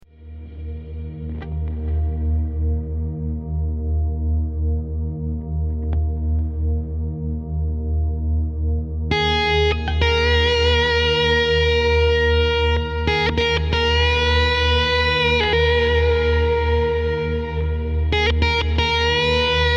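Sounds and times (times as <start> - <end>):
drone: 0.1 - 19.7.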